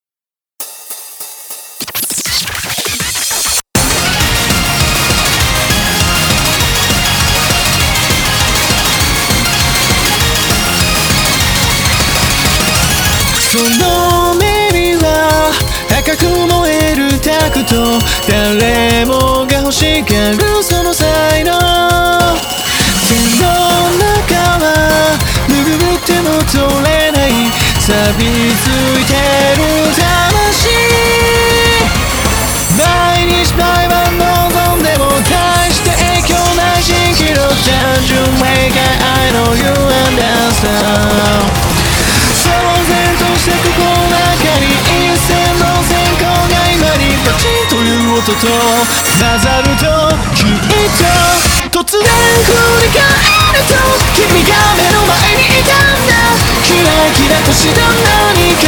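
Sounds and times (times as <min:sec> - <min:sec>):
rock music: 0:00.6 - 0:58.6.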